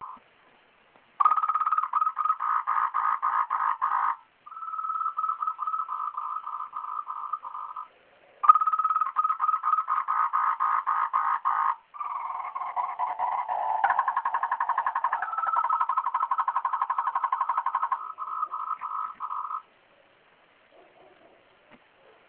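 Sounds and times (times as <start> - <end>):
frog: 0.0 - 0.2, 1.2 - 19.7.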